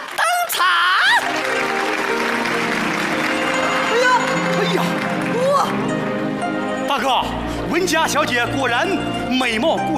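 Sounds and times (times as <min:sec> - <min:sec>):
crowd applause: 0:00.0 - 0:06.3
whoops and cheers: 0:00.2 - 0:01.3
speech: 0:07.0 - 0:09.9.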